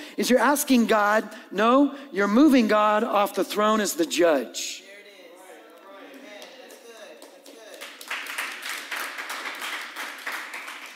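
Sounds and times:
speech: 0:00.2 - 0:04.9
mild congregation clapping at a church sermon: 0:05.9 - 0:10.9.

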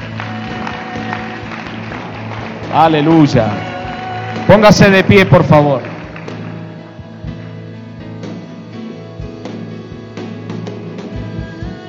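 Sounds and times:
audience applause: 0:00.0 - 0:06.7
speech: 0:02.7 - 0:03.7, 0:04.4 - 0:05.9.

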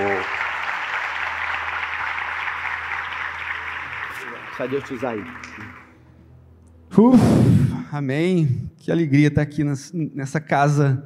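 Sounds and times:
audience applause: 0:00.0 - 0:06.0
speech: 0:04.6 - 0:05.8, 0:06.9 - 0:11.0.

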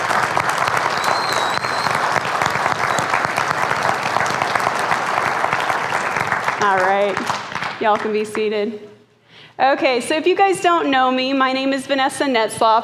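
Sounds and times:
audience applauding mothers: 0:00.0 - 0:08.3
speech: 0:06.7 - 0:08.9, 0:09.6 - 0:12.8.

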